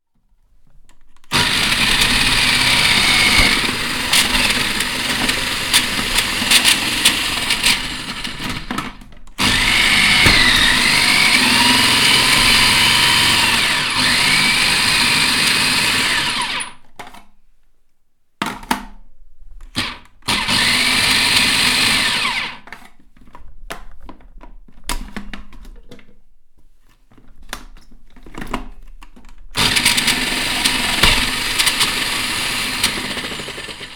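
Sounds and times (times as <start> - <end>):
food mixer running: 1.3 - 16.8, 19.8 - 22.6, 29.6 - 33.9.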